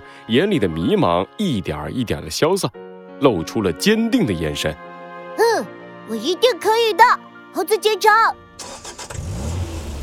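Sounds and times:
speech: 0.3s - 4.9s, 5.6s - 8.7s
off-road vehicle engine starting: 8.6s - 10.0s.

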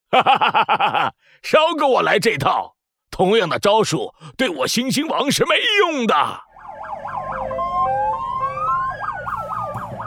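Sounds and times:
laughter: 0.1s - 1.2s
speech: 0.1s - 6.5s
police car siren: 6.4s - 10.0s.

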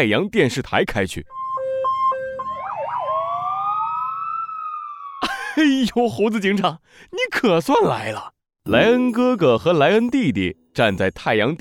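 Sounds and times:
speech: 0.0s - 1.4s, 5.6s - 11.5s
police car siren: 1.3s - 5.3s.

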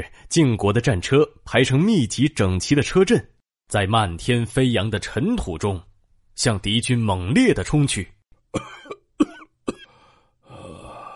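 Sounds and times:
speech: 0.0s - 9.0s
man coughing: 8.5s - 10.0s
rough rasping breath: 9.8s - 11.1s.

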